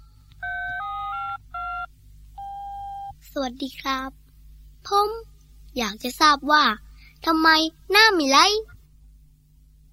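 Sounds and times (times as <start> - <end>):
low hum: 0.0 - 9.9
telephone ringing tone: 0.4 - 3.1
speech: 3.4 - 4.2, 4.8 - 8.7.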